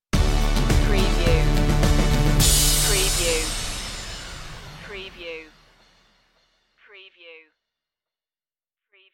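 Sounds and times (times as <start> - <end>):
musical stinger: 0.2 - 6.1.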